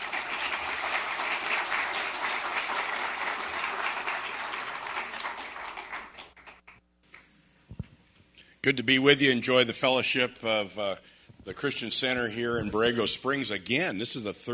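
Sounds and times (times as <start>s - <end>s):
audience applause welcoming a speaker: 0.0s - 6.6s
speech: 8.6s - 14.5s.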